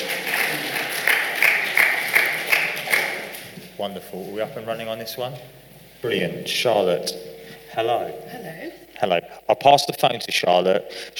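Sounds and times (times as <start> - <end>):
audience applause: 0.0 - 3.4
speech: 3.8 - 11.1.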